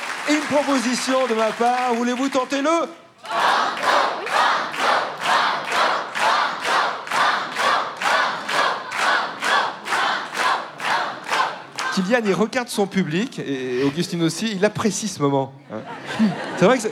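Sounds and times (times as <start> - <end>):
speech: 0.3 - 4.8, 12.0 - 16.9
game-show studio audience chanting banco: 3.2 - 12.1
laughter: 15.6 - 16.9.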